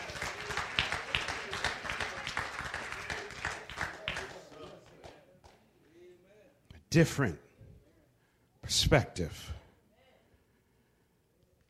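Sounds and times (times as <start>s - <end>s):
hand clapping: 0.0s - 5.7s
speech: 7.0s - 7.5s, 8.7s - 9.6s.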